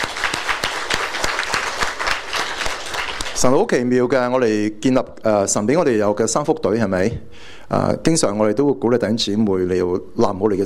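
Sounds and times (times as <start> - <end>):
audience applause: 0.0 - 3.5
speech: 3.4 - 10.6.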